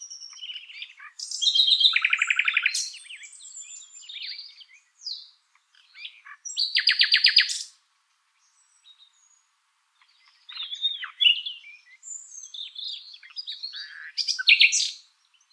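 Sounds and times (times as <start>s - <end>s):
Common nightingale Luscinia megarhynchos song with chirps, whistles and rattling trill: 0.0s - 15.5s.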